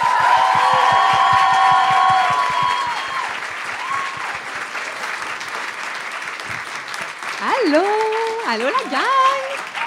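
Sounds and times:
cheers and whoops: 0:00.0 - 0:04.5, 0:09.4 - 0:09.8
audience applauding welcoming a guest: 0:00.0 - 0:09.8
speech: 0:08.5 - 0:09.4.

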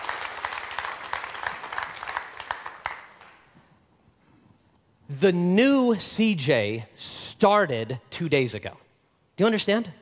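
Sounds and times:
round of applause: 0:00.0 - 0:03.5
speech: 0:05.1 - 0:08.8, 0:09.4 - 0:10.0.

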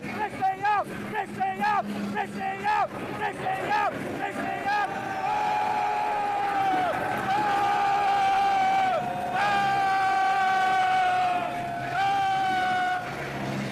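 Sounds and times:
crowd booing: 0:00.0 - 0:13.7
people heckling: 0:03.3 - 0:13.2.

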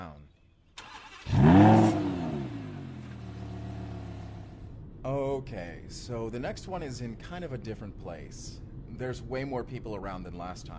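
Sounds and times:
car engine revving: 0:00.8 - 0:04.7
speech: 0:05.9 - 0:10.7.

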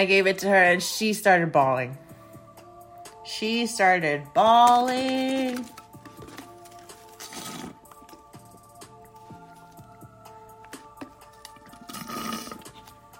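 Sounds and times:
speech: 0:00.0 - 0:02.0, 0:03.3 - 0:05.8
person slurping a drink: 0:11.7 - 0:12.8.

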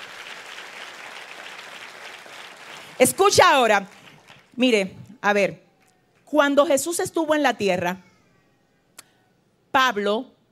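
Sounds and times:
audience clapping: 0:00.0 - 0:04.6
speech: 0:03.0 - 0:04.0, 0:04.6 - 0:05.6, 0:06.3 - 0:08.1, 0:09.8 - 0:10.4.

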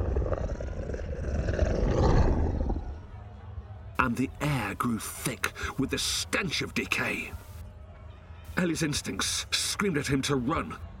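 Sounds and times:
creature's low guttural growl: 0:00.0 - 0:03.0
speech: 0:04.1 - 0:07.4, 0:08.6 - 0:10.9.

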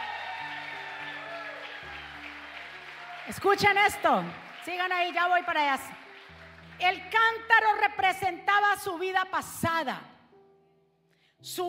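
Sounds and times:
applause: 0:00.0 - 0:07.8
speech: 0:03.3 - 0:06.0, 0:06.8 - 0:10.1, 0:11.4 - 0:11.6.

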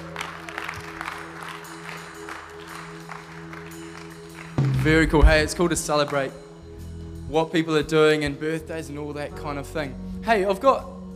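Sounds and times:
audience applause: 0:00.0 - 0:05.2
speech: 0:04.8 - 0:06.4, 0:07.3 - 0:10.9.

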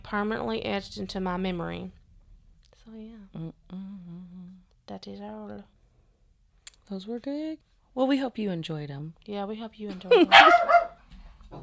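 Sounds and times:
speech: 0:00.1 - 0:02.0, 0:02.9 - 0:05.8, 0:06.9 - 0:10.7
dog barking: 0:10.1 - 0:11.0.

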